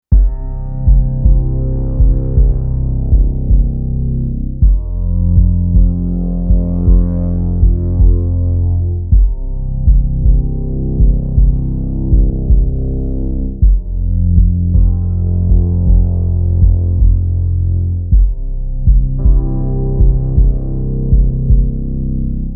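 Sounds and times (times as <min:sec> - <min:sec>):
instrumental music: 0:00.0 - 0:22.5.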